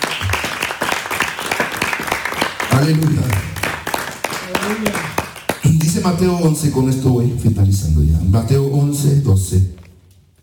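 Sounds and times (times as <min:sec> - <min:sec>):
audience clapping loudly: 0:00.0 - 0:06.7
speech: 0:02.8 - 0:03.5, 0:05.9 - 0:09.8.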